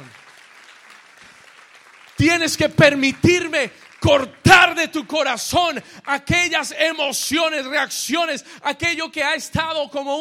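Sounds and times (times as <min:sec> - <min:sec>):
audience applauding: 0:00.0 - 0:06.3
speech: 0:02.2 - 0:10.1.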